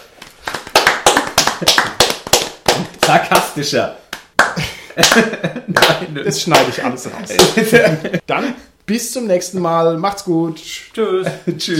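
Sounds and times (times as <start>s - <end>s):
applause: 0.3s - 3.5s, 4.4s - 6.8s
speech: 3.1s - 4.0s, 5.0s - 11.7s
laughter: 4.6s - 8.4s.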